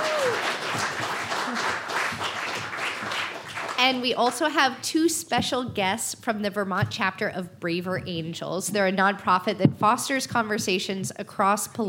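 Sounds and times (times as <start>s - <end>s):
audience applause: 0.0s - 3.9s
speech: 3.8s - 11.8s.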